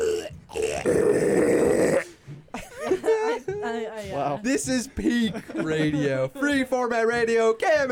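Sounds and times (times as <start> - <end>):
person imitating pig squeals with the tongue: 0.0 - 2.1
laughter: 2.5 - 6.8
speech: 4.3 - 7.9.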